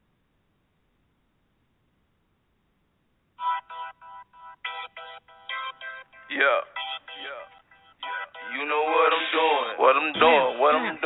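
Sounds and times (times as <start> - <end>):
phone ringtone for an incoming caller: 3.4 - 11.0
speech: 6.3 - 6.7, 8.6 - 9.0.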